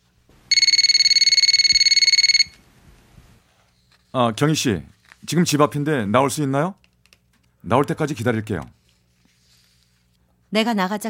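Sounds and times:
telephone ringing: 0:00.5 - 0:02.6
speech: 0:04.1 - 0:06.8, 0:07.6 - 0:08.8, 0:10.5 - 0:11.0.

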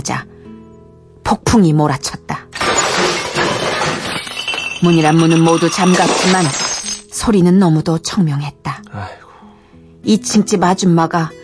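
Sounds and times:
speech: 0:00.0 - 0:00.3, 0:01.3 - 0:03.1, 0:04.8 - 0:06.6, 0:07.2 - 0:09.2, 0:10.0 - 0:11.4
electric fan thrown and smashing: 0:02.6 - 0:06.7.

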